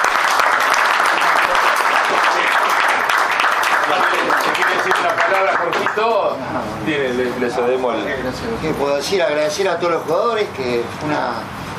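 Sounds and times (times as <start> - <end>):
applause: 0.0 - 6.4
speech: 3.9 - 11.6.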